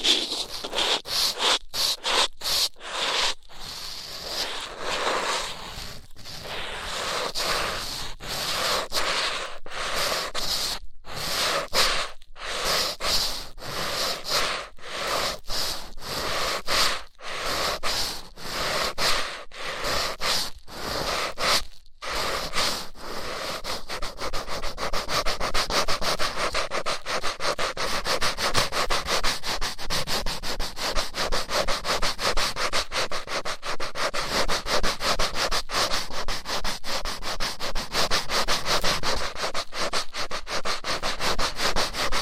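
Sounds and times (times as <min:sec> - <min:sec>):
rough ear cleaning scratchy rubbing strokes: 0:00.0 - 0:42.2.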